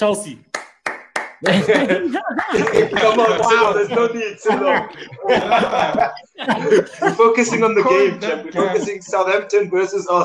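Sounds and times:
speech: 0.0s - 0.5s, 1.4s - 10.2s
applause: 0.5s - 3.8s
laughter: 1.4s - 10.2s.

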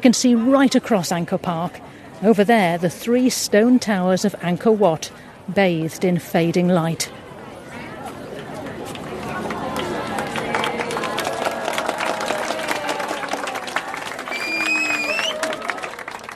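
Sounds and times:
speech: 0.0s - 7.2s
crowd applauding at sunset: 8.9s - 16.3s
high-pitched whoops: 14.3s - 15.7s.

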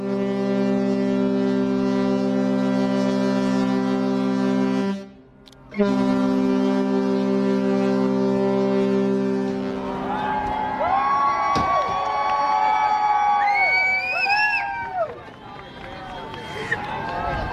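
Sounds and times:
Russian icebreaker horn sounding: 0.0s - 10.8s
faint wind noise: 0.0s - 17.5s
crew and passengers cheering on deck: 9.6s - 17.5s.

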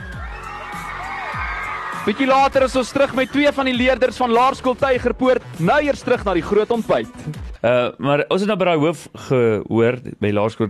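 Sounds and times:
whoops and shouts: 0.0s - 3.7s
crowd cheering and applauding: 0.0s - 5.2s
speech: 2.0s - 10.6s.

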